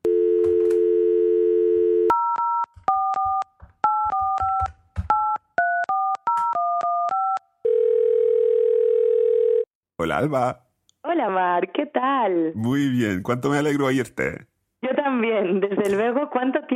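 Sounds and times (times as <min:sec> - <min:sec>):
telephone dial tone: 0:00.0 - 0:04.7, 0:05.6 - 0:09.7
two-pitched telephone keypad beeps: 0:02.1 - 0:07.4
speech: 0:10.0 - 0:14.5, 0:15.2 - 0:16.7.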